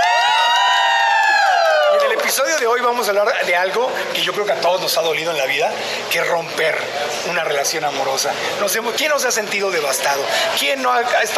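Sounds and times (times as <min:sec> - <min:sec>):
audience cheering in the Plantasia restaurant in Mexico City: 0:00.0 - 0:02.6
speech: 0:02.4 - 0:11.3.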